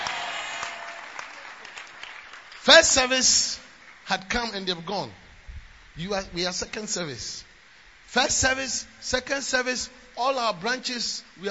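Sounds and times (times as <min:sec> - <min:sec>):
audience clapping: 0:00.0 - 0:03.1
speech: 0:02.6 - 0:05.2, 0:06.0 - 0:07.5, 0:08.1 - 0:11.4.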